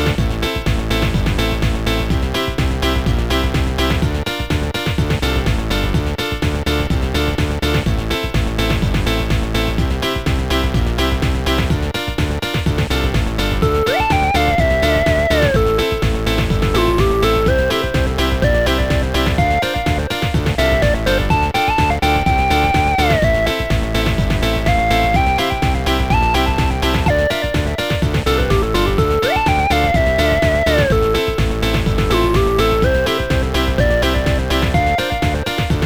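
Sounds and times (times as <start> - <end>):
octave tracker music on a sound card: 0.0 - 35.8.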